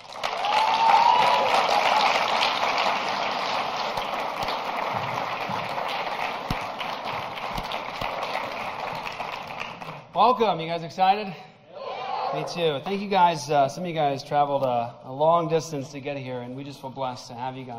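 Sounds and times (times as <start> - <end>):
conference crowd applauding to welcome a speaker to the stage: 0.0 - 10.2
speech: 10.2 - 11.5, 12.3 - 17.7.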